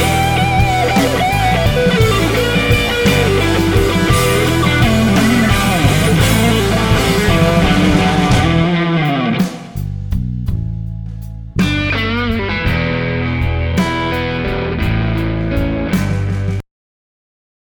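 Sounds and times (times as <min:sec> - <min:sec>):
blues solo: 0:00.0 - 0:16.6.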